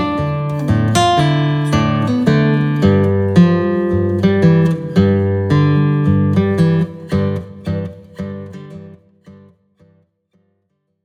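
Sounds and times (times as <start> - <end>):
blues music in G: 0.0 - 8.8.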